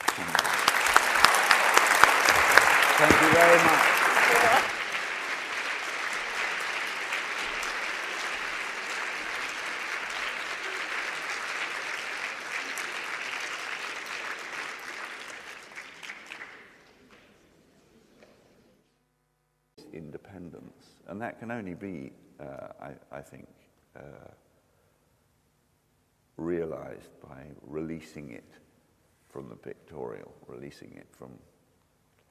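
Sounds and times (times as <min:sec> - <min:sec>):
audience applause: 0:00.0 - 0:17.4
speech: 0:03.0 - 0:04.8, 0:21.2 - 0:24.5, 0:26.7 - 0:28.6, 0:29.3 - 0:31.5.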